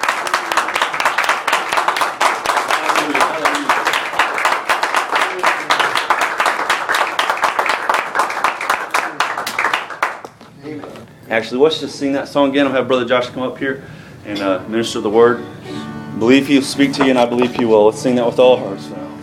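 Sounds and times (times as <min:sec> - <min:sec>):
audience hand clapping: 0:00.0 - 0:10.4
speech: 0:11.3 - 0:19.0.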